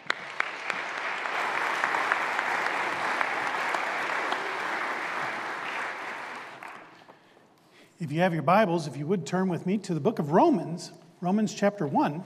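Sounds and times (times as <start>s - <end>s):
audience applauding to welcome a guest preacher: 0.0s - 7.1s
speech: 8.0s - 12.2s.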